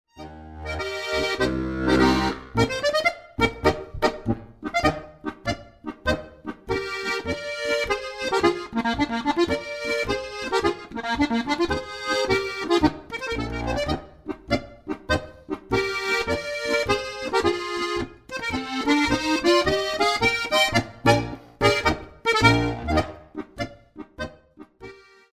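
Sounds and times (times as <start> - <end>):
fire brigade march: 0.2 - 14.5, 15.4 - 23.4.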